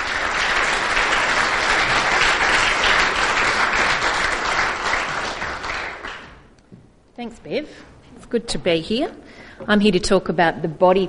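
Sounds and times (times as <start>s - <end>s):
audience clapping in welcome: 0.0s - 6.6s
speech: 7.2s - 11.0s.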